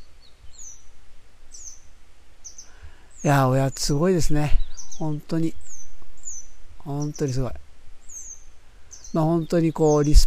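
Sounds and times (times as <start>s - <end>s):
grey wagtail chirping: 0.0s - 10.2s
speech: 3.2s - 5.6s, 6.8s - 7.6s, 9.1s - 10.2s
low rumble: 4.5s - 8.8s.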